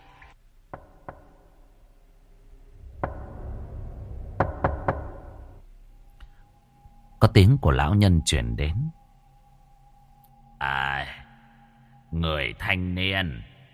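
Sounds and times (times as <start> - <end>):
knocking on a door: 0.7 - 1.4, 3.0 - 3.4, 4.4 - 5.4
speech: 7.2 - 8.9, 12.1 - 13.5.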